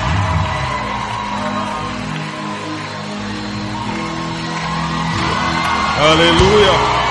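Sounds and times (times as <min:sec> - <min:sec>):
church audience applause welcoming a pastor: 0:00.0 - 0:07.0
church audience whooping: 0:00.0 - 0:07.0
speech: 0:06.0 - 0:07.0.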